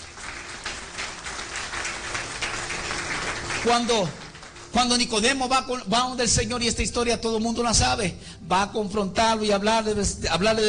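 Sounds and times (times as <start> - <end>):
audience applause: 0.0 - 5.3
speech: 3.6 - 10.6.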